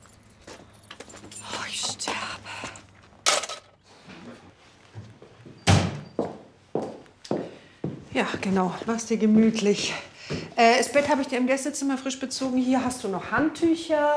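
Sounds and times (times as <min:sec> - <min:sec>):
keys jangling and rustling: 0:00.0 - 0:02.1
door swinging shut with a solid low thud: 0:05.6 - 0:06.1
speech: 0:08.2 - 0:14.1.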